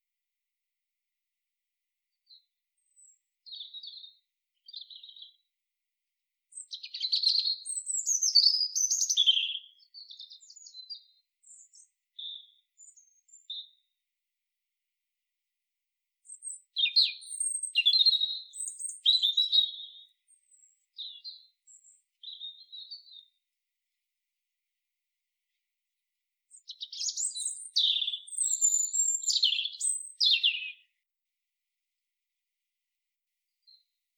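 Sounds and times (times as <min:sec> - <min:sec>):
European robin singing: 0:02.3 - 0:05.5, 0:06.5 - 0:13.9, 0:16.2 - 0:23.4, 0:26.5 - 0:31.0.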